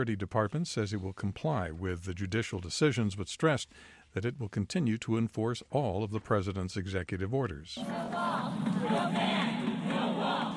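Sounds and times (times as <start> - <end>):
speech: 0.0 - 9.3
demonstrators shouting near the White House: 7.8 - 10.5.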